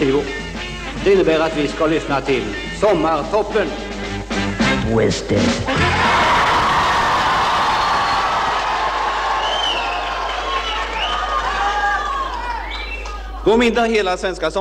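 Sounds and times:
speech: 1.0s - 6.0s, 13.5s - 14.5s
group of young voices cheering and shouting happily: 5.8s - 13.4s.

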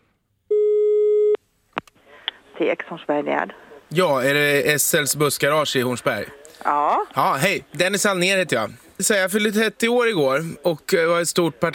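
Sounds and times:
telephone line tone: 0.5s - 1.4s
speech: 2.6s - 11.7s.

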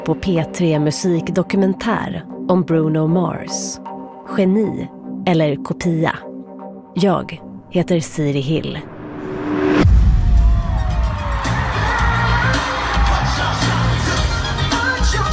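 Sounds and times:
speech: 0.0s - 6.3s, 7.0s - 8.9s
live concert audience cheering: 10.2s - 15.2s.

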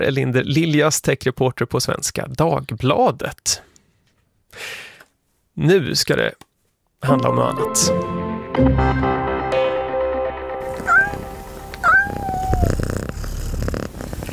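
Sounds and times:
speech: 0.0s - 3.7s, 4.5s - 4.8s, 5.6s - 9.3s
cats meowing: 10.7s - 13.8s.

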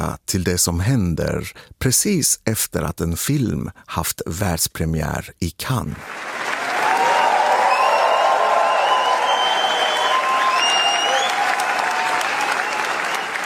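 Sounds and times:
speech: 0.0s - 6.4s
standing ovation applause after the Gentle Monster premiere at Cannes film festival: 6.0s - 13.4s.

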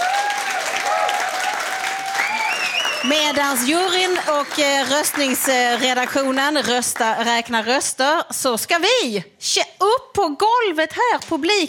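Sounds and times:
audience applause: 0.0s - 7.3s
faint audience whistles: 2.2s - 3.1s
speech: 3.0s - 11.6s.

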